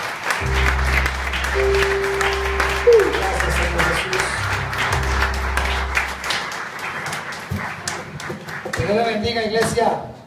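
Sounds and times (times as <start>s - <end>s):
church congregation applauding at the close of a prayer: 0.0s - 9.3s
sustained low keyboard-like tones: 0.4s - 6.5s
speech: 8.9s - 10.1s.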